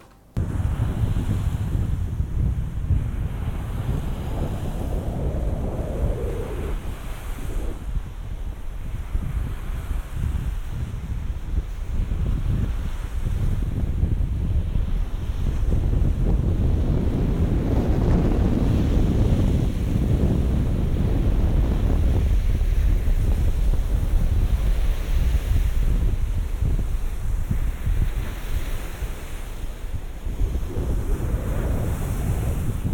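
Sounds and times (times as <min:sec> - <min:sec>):
sea waves washing: 0:00.0 - 0:11.9, 0:20.6 - 0:32.9
wind buffeting binaural microphones by the sea: 0:00.4 - 0:32.9.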